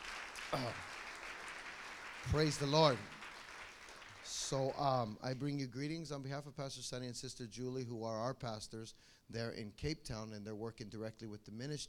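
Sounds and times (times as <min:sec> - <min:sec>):
audience applause: 0:00.0 - 0:04.8
speech: 0:00.5 - 0:00.9, 0:02.2 - 0:03.2, 0:04.3 - 0:11.8.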